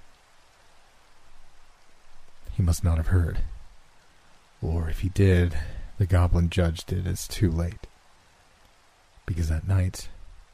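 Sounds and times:
steady rain: 0.0 - 10.5
speech: 2.6 - 3.5, 4.6 - 7.9, 9.3 - 10.2.

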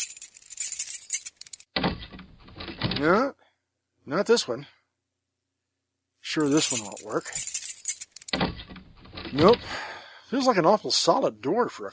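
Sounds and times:
keys jangling: 0.0 - 1.6, 6.4 - 8.4
speech: 3.0 - 3.4, 4.0 - 4.8, 6.3 - 7.5, 9.3 - 11.9.

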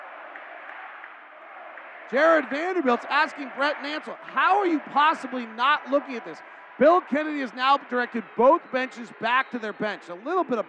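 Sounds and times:
arena crowd chanting: 0.0 - 8.3
speech: 2.1 - 10.6.

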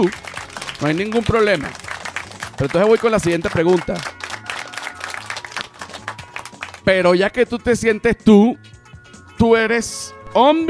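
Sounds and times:
speech: 0.0 - 0.2, 0.8 - 1.8, 2.6 - 4.1, 6.9 - 8.8, 9.4 - 10.6
audience applause: 0.0 - 6.8.

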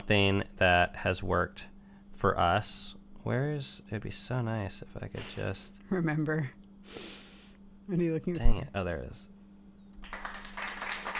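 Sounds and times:
speech: 0.1 - 7.2, 7.9 - 9.3
hand clapping: 10.0 - 11.1.

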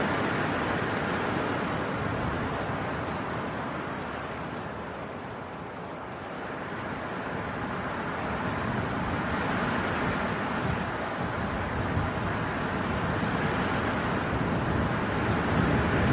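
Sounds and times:
winter wind storm roaring: 0.0 - 16.1.

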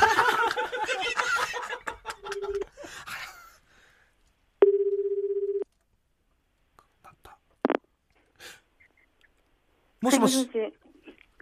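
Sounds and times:
laughter: 0.0 - 3.6
telephone ringing tone during outgoing call: 4.6 - 5.6
speech: 10.0 - 10.9.

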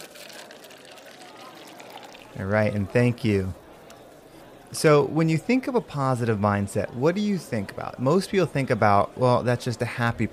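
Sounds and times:
drinks being poured by waiter: 0.0 - 4.2
speech: 2.3 - 3.6, 4.7 - 10.3.

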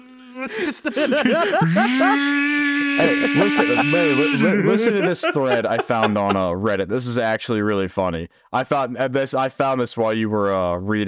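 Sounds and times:
laughter: 0.4 - 6.7
speech: 0.4 - 11.0
voice imitating a shop vac: 1.6 - 6.3.

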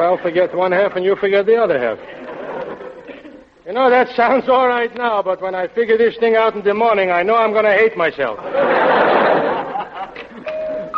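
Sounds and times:
speech: 0.0 - 2.2, 3.7 - 9.0
laughter: 2.0 - 3.6, 8.3 - 10.9
two-note doorbell chime: 10.4 - 10.9.

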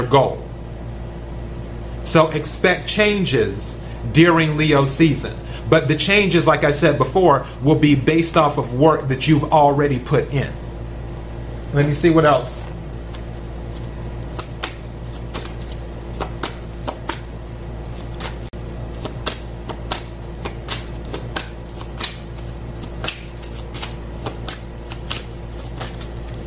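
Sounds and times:
speech: 0.0 - 0.4, 2.1 - 10.6, 11.7 - 12.6
steady low hum: 0.0 - 26.4
tarot cards being shuffled: 13.1 - 26.4.

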